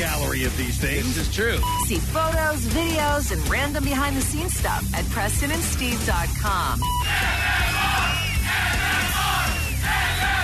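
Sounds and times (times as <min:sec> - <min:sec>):
speech: 0:00.4 - 0:08.7
crowd cheering and yelling: 0:07.0 - 0:10.4.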